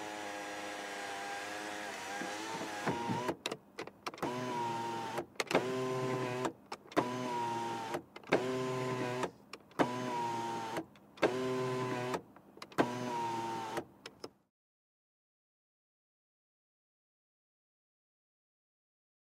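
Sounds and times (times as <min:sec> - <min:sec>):
car sunroof: 0:00.0 - 0:03.4, 0:04.2 - 0:12.2, 0:12.8 - 0:13.9.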